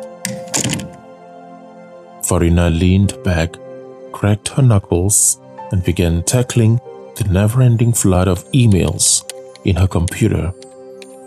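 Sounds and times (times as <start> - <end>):
door swinging shut with a latch rattle: 0.3 - 1.0
speech: 2.3 - 10.6.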